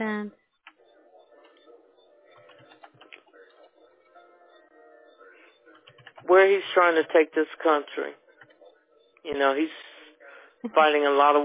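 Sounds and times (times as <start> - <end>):
computer keyboard typing: 0.6 - 3.9, 5.6 - 6.3, 8.3 - 8.7
speech: 6.3 - 8.2, 9.2 - 9.9, 10.6 - 11.4.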